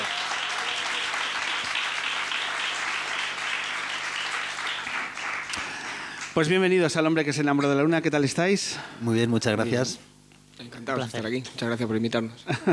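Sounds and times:
audience applause: 0:00.0 - 0:06.6
speech: 0:06.4 - 0:12.7.

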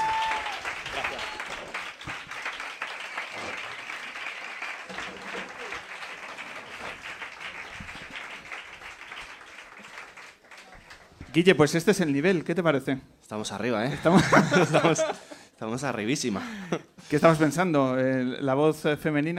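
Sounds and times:
audience applause: 0:00.0 - 0:11.6
speech: 0:11.4 - 0:19.3
laughter: 0:13.9 - 0:15.4.

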